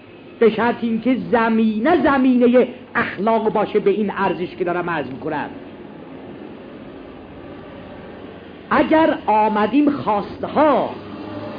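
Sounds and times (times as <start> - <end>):
passing car traffic rumble: 0.0 - 11.5
speech: 0.4 - 5.7, 8.7 - 11.0.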